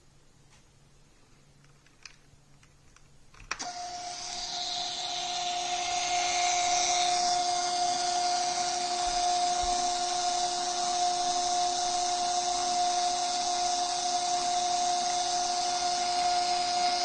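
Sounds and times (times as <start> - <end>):
receipt printer printing on thermal paper: 3.6 - 17.0.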